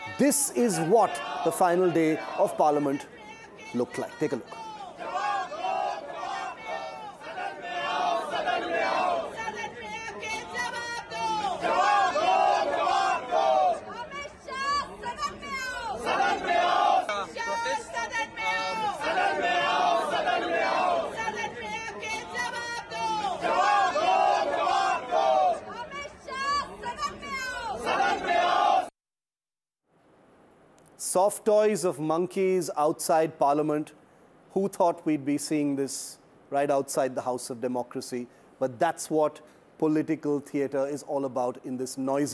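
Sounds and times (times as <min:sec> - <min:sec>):
protesters chanting slogans at a demonstration: 0:00.0 - 0:28.9
speech: 0:00.2 - 0:04.6, 0:31.7 - 0:34.0, 0:34.6 - 0:42.3.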